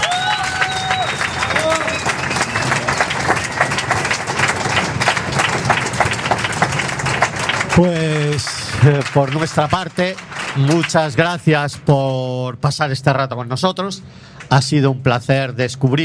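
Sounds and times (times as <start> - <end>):
high whistles: 0.0 - 3.6
audience applause: 0.0 - 11.6
crowd voices: 0.0 - 11.9
speech: 7.8 - 16.0.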